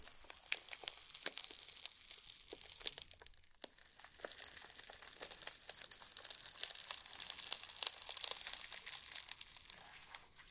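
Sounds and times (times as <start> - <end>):
slime squeezed and pressed: 0.0 - 9.9.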